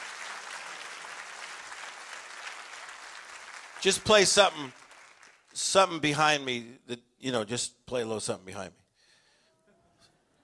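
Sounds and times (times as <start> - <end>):
audience clapping: 0.0 - 6.1
speech: 3.8 - 4.8, 5.6 - 8.8.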